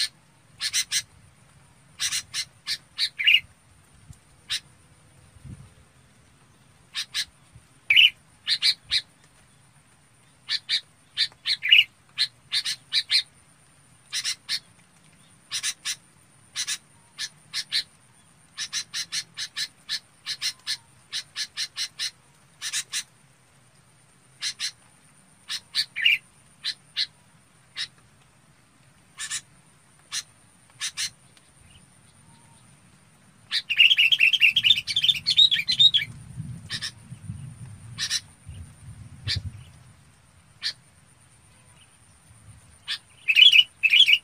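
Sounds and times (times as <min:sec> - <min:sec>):
red-whiskered bulbul chirping calls: 0:00.0 - 0:01.1, 0:02.0 - 0:03.5, 0:06.8 - 0:09.1, 0:10.3 - 0:13.3, 0:14.0 - 0:23.1, 0:24.4 - 0:24.8, 0:25.4 - 0:28.0, 0:29.2 - 0:32.7, 0:33.4 - 0:39.8, 0:40.6 - 0:40.8, 0:42.7 - 0:44.2.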